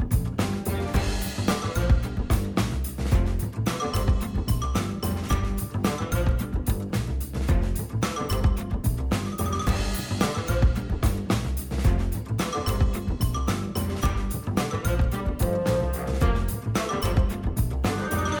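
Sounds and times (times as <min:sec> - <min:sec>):
game background music: 0:00.0 - 0:18.3.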